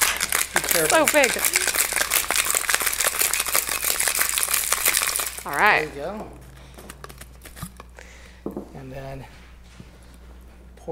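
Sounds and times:
cocktail shaker shaking: 0.0 - 8.0
speech: 0.8 - 1.8, 5.4 - 6.5, 8.4 - 9.4.

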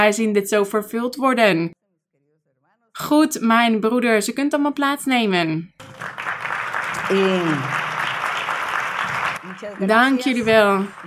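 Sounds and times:
speech: 0.0 - 1.8, 3.0 - 6.3, 7.1 - 7.8, 9.6 - 11.0
audience applause: 5.8 - 11.0.

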